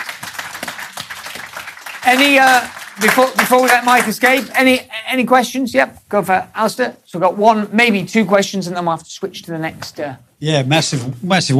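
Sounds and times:
audience applause: 0.0s - 4.6s
speech: 2.1s - 11.5s.

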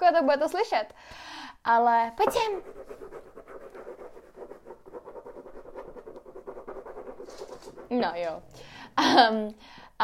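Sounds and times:
speech: 0.1s - 4.3s, 7.3s - 10.0s
dog scratching at a door: 2.2s - 8.5s.

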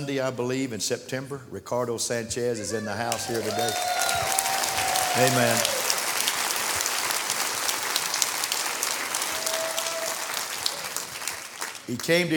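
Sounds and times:
speech: 0.0s - 4.1s, 5.2s - 5.8s, 11.9s - 12.3s
audience applause: 3.1s - 12.3s.

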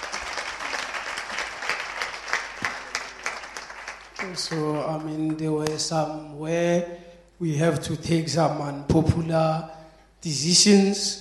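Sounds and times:
audience applause: 0.0s - 5.4s
speech: 4.2s - 11.1s.

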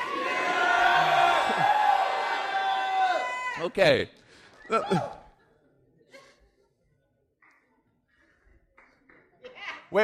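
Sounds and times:
audience yelling at top of lungs: 0.0s - 3.8s
speech: 3.6s - 5.2s.

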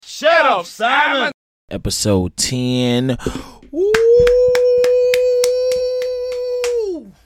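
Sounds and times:
speech: 0.2s - 4.6s
quick evenly spaced hand claps: 3.6s - 7.0s
long steady loud vocal whoop: 3.7s - 7.2s.

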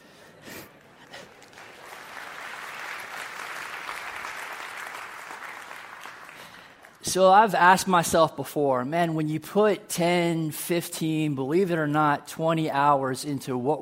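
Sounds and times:
audience applause: 0.7s - 7.0s
speech: 7.1s - 13.8s.

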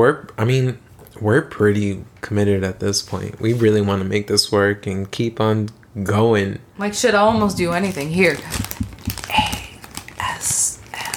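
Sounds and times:
speech: 0.0s - 8.7s
crinkly crumpling: 7.3s - 11.1s
faint breathy noise: 9.0s - 11.1s.

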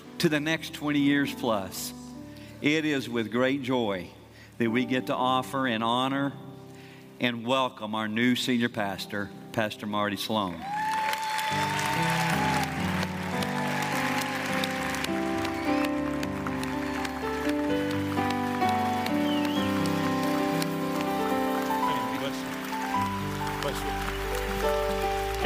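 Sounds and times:
speech: 0.2s - 2.0s, 2.6s - 6.5s, 7.2s - 10.8s, 11.5s - 12.1s
church congregation clapping on their feet: 10.6s - 25.4s
musical tones: 12.0s - 25.4s.

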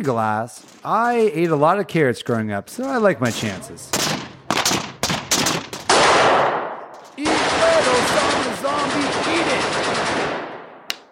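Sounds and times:
speech: 0.0s - 4.2s
gunfire at an outdoor shooting range: 3.2s - 10.8s.

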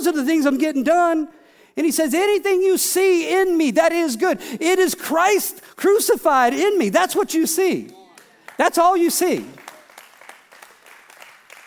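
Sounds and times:
speech: 0.0s - 8.0s, 8.6s - 9.6s
few people clapping: 7.9s - 11.6s.

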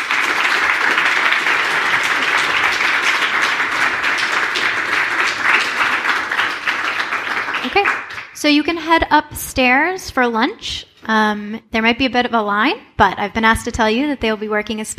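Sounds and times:
audience applause: 0.0s - 8.4s
speech: 7.8s - 14.9s.

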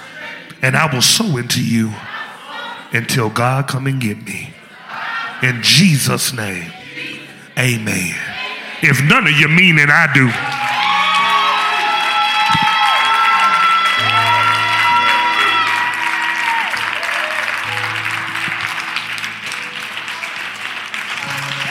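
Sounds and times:
speech: 0.6s - 2.1s, 2.9s - 4.6s, 5.4s - 6.8s, 7.6s - 10.5s
crowd clapping: 10.1s - 21.6s.

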